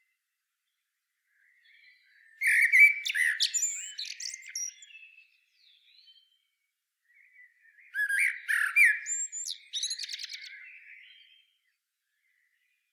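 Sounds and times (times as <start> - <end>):
common blackbird Turdus merula singing: 1.3 - 6.4, 7.1 - 12.8.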